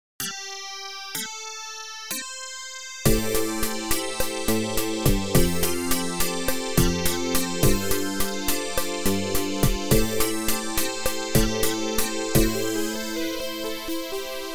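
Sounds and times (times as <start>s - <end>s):
romantic music: 3.1s - 14.5s.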